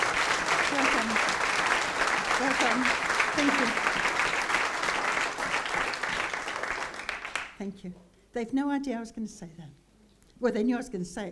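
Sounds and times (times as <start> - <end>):
audience applause for two people asked to stand up: 0.0 - 7.6
speech: 2.4 - 4.0, 7.6 - 9.8, 10.4 - 11.3.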